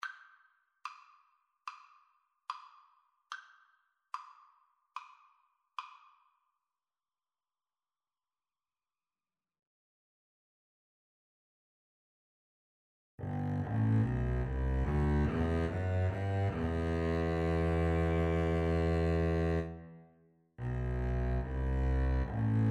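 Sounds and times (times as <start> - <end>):
double bass duet: 13.2 - 19.9, 20.6 - 22.6.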